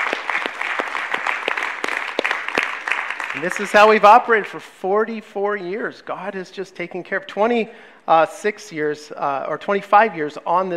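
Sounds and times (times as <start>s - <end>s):
audience applause: 0.0s - 4.0s
speech: 3.4s - 10.7s.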